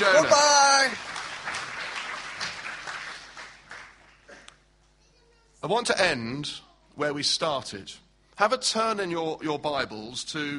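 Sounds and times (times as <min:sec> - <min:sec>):
speech: 0:00.0 - 0:00.4, 0:05.6 - 0:10.5
audience applause: 0:00.0 - 0:04.5.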